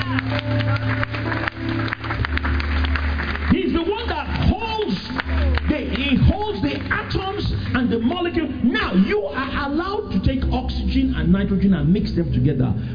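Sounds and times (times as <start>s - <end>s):
audience clapping hands: 0.0s - 8.4s
speech: 9.6s - 12.9s.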